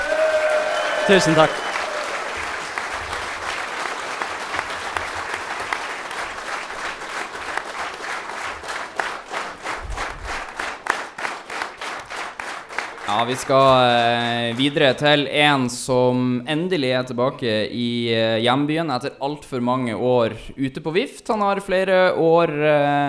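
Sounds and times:
audience applause: 0.0 - 15.1
speech: 1.1 - 1.7, 13.2 - 23.0.

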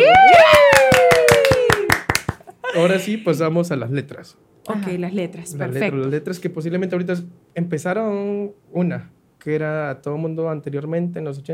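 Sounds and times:
hands clapping: 0.0 - 2.6
speech: 2.8 - 11.5.

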